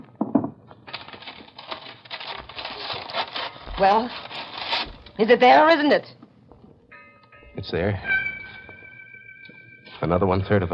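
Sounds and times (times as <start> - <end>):
back of a framed picture being ripped off: 0.9 - 5.0
speech: 3.8 - 4.3, 5.2 - 6.2, 7.6 - 8.1, 10.0 - 10.7.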